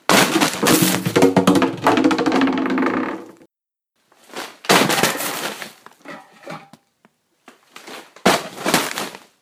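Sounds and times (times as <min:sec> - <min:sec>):
bag of hay thrown at a recycling bin: 0:00.0 - 0:02.9, 0:04.4 - 0:05.8, 0:08.2 - 0:09.3.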